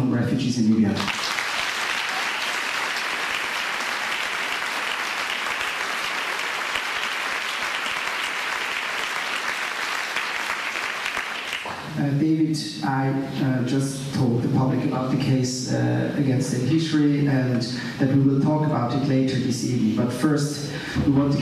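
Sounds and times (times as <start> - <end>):
speech: 0.3 - 1.3, 12.0 - 21.4
audience applause: 1.0 - 11.9.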